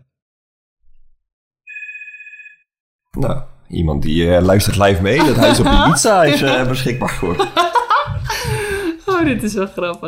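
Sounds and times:
telephone ringing: 1.7s - 2.7s, 5.2s - 7.9s
speech: 3.2s - 7.7s, 9.2s - 10.0s
laughter: 5.0s - 9.6s.

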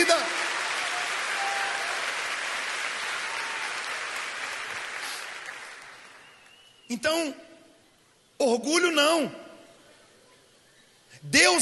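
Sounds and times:
audience applauding: 0.0s - 6.9s
speech: 6.9s - 7.5s, 8.4s - 9.4s, 11.2s - 11.5s.

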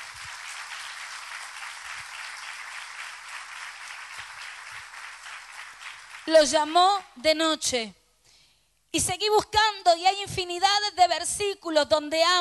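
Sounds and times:
crowd applauding loudly: 0.0s - 6.3s
speech: 6.3s - 8.0s, 8.9s - 12.4s.

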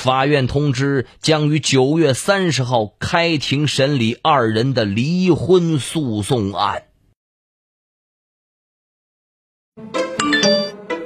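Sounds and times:
speech: 0.0s - 6.9s
text message notification chime: 10.2s - 10.8s.

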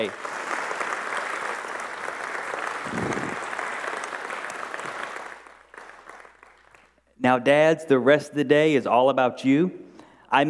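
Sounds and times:
speech: 0.0s - 0.2s, 7.2s - 10.4s
audience applause: 0.0s - 6.9s.

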